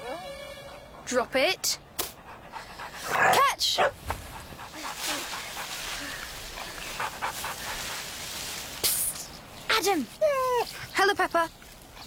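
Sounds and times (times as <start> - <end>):
dog panting: 0.8 - 8.2
speech: 1.1 - 1.9, 3.2 - 4.1, 9.8 - 11.6.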